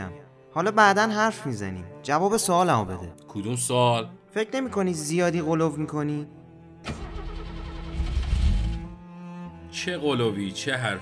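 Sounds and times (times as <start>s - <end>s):
speech: 0.6s - 7.0s, 9.8s - 11.0s
car engine starter motor cranking without starting: 6.9s - 8.9s.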